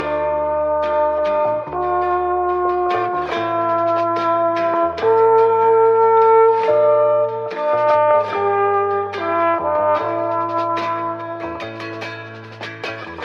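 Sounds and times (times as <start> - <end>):
horns: 0.0 - 13.2.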